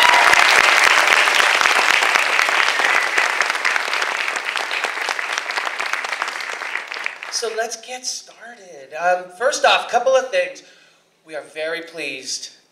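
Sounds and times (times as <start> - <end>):
round of applause: 0.0 - 7.6
speech: 7.4 - 10.7, 11.3 - 12.6.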